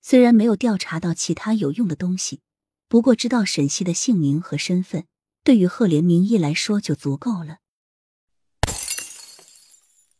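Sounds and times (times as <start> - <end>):
speech: 0.1 - 7.6
glass shattering and tinkling fragments: 8.6 - 10.1
vase smashing on the floor: 8.6 - 10.1.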